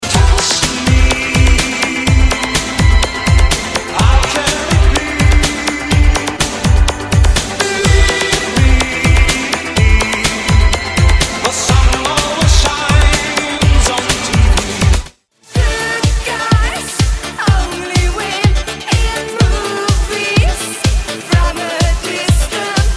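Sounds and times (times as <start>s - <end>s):
80s disco megamix: 0.0s - 22.9s.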